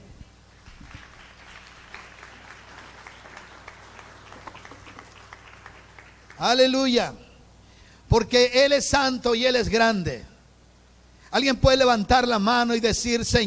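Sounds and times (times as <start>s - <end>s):
audience applause: 0.6s - 6.5s
speech: 6.4s - 7.2s, 8.1s - 10.3s, 11.3s - 13.4s.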